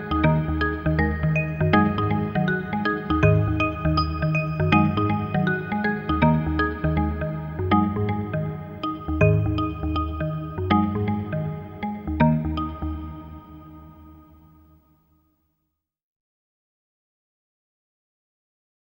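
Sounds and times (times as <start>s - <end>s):
marimba: 0.0s - 14.7s.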